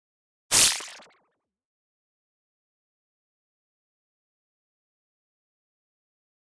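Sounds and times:
high-frequency liquid shimmer wash: 0.6s - 1.1s.

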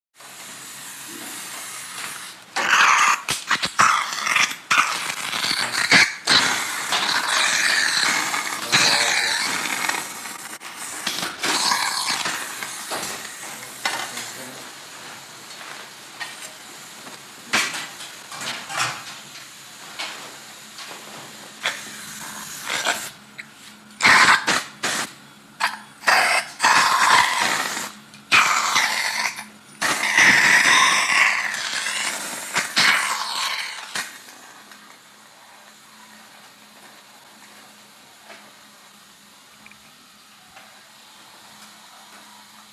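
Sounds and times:
operating room suction machine: 0.2s - 14.7s, 21.6s - 36.4s.

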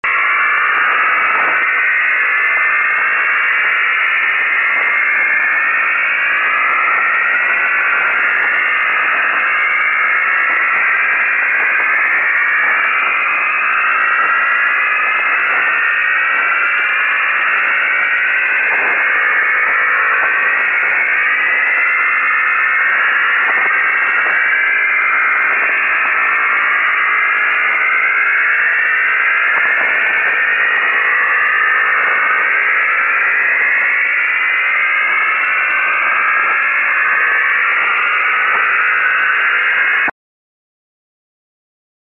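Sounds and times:
high grinding static: 0.1s - 40.1s.

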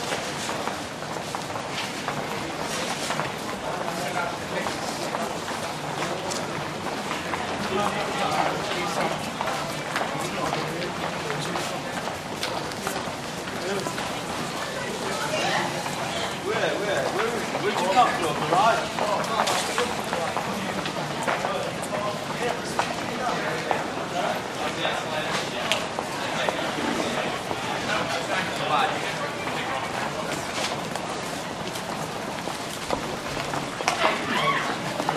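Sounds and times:
crowd murmur in a train station: 0.0s - 35.1s.

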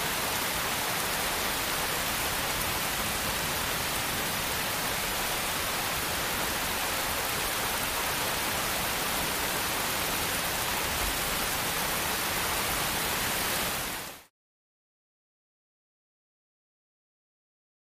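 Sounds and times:
heavy rain on puddles: 0.0s - 14.3s.

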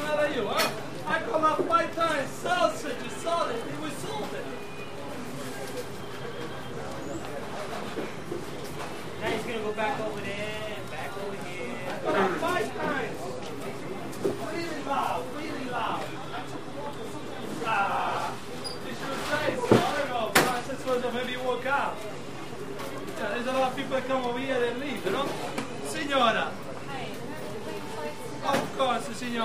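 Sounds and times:
pizza parlor restaurant walla: 0.0s - 29.4s
door opening and closing with squeak: 18.6s - 18.9s.

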